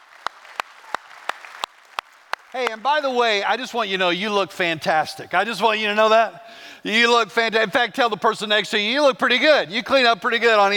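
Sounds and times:
sharp claps: 0.0s - 2.9s
church congregation applauding: 0.0s - 3.5s
speech: 2.5s - 10.7s.

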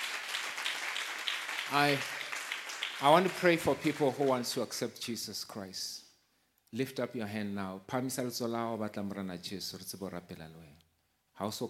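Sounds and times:
audience clapping hands: 0.0s - 4.7s
speech: 1.7s - 2.2s, 3.0s - 6.0s, 6.7s - 10.8s, 11.4s - 11.6s.

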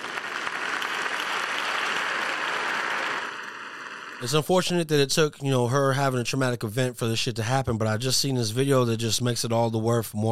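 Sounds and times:
clapping: 0.0s - 4.2s
speech: 4.2s - 10.3s.

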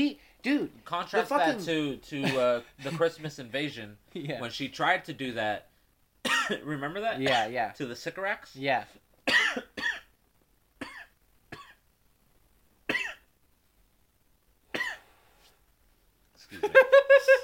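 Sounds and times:
speech: 0.0s - 9.8s, 16.5s - 17.4s
harsh coughing after smoking a blunt: 6.2s - 6.6s, 7.2s - 7.6s, 9.3s - 10.1s, 12.9s - 13.3s, 14.7s - 15.1s.

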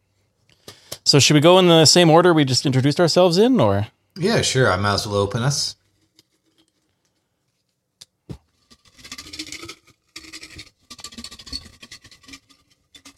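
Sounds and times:
speech: 1.1s - 5.8s
paper slips shaken in a jar: 8.6s - 13.1s.

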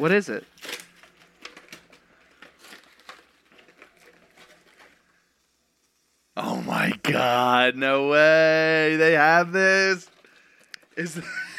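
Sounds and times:
speech: 0.0s - 0.8s, 7.1s - 10.2s, 11.0s - 11.4s
paper gift wrapping being torn open: 0.0s - 5.4s.

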